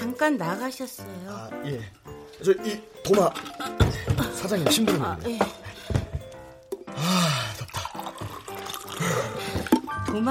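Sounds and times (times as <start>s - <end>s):
speech: 0.2s - 5.6s
water pouring into a glass: 7.0s - 9.9s.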